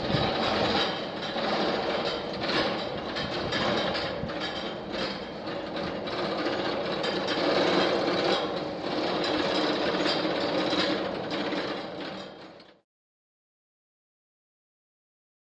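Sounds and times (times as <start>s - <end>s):
roller coaster ride: 0.0s - 12.7s.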